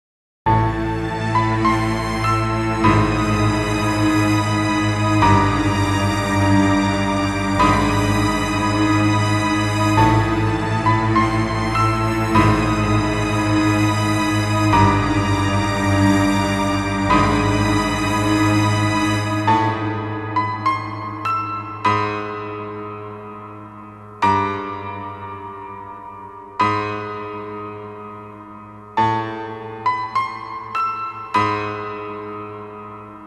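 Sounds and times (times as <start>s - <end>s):
scary music: 0.5s - 33.2s.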